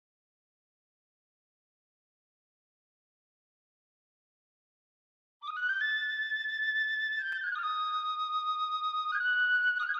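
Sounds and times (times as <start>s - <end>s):
flute track intro: 5.4s - 9.9s.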